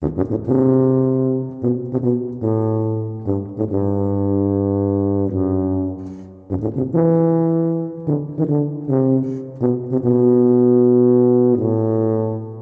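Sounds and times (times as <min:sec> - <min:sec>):
tuba: 0:00.0 - 0:12.6.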